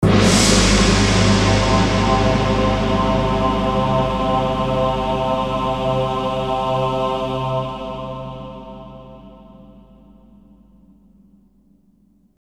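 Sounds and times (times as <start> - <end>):
orchestral phrase: 0.0 - 9.6.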